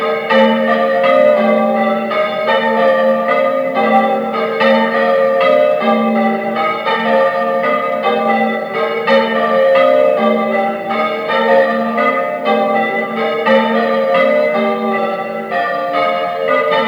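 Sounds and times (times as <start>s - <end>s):
bells ringing: 0.0s - 16.8s.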